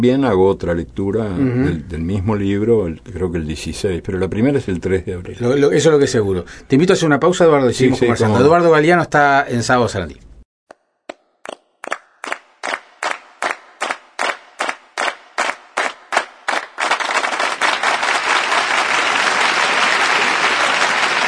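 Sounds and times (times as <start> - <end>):
speech: 0.0 - 10.3
audience applause: 12.2 - 21.2.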